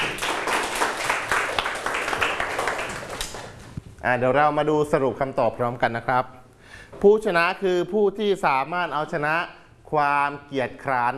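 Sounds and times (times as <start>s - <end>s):
clapping: 0.0s - 3.6s
speech: 4.0s - 6.4s, 7.0s - 11.1s.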